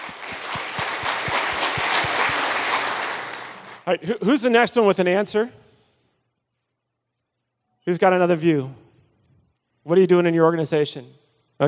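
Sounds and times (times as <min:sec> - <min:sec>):
audience applause: 0:00.0 - 0:03.9
speech: 0:03.9 - 0:05.7, 0:07.9 - 0:08.8, 0:09.8 - 0:11.6.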